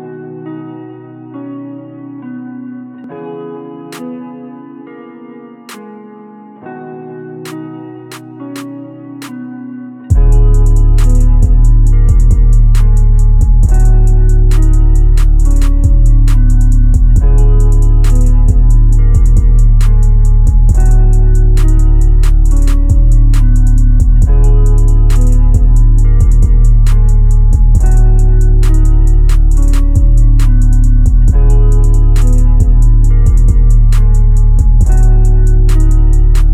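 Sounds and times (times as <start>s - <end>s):
bass boosted beats: 10.1s - 36.5s.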